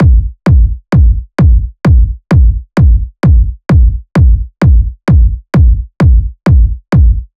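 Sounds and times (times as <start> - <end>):
techno kick drum loop at 130 BPM: 0.0 - 7.3.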